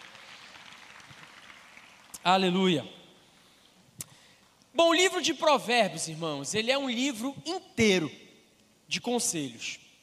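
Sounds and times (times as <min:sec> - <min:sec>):
audience applauding: 0:00.0 - 0:02.2
speech: 0:02.2 - 0:03.0, 0:04.8 - 0:08.2, 0:08.9 - 0:09.8.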